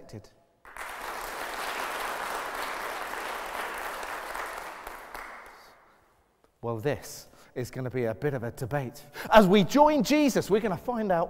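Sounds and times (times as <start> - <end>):
speech: 0.1 - 0.4, 6.6 - 11.2
audience clapping: 0.6 - 6.0.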